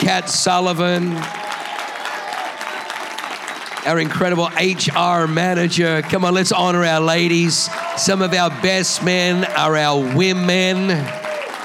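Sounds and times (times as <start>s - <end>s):
audience applause: 0.0s - 11.6s
speech: 0.1s - 1.5s, 3.8s - 11.3s.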